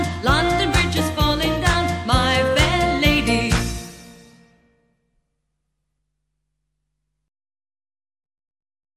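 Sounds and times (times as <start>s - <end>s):
English joke song: 0.0s - 4.3s.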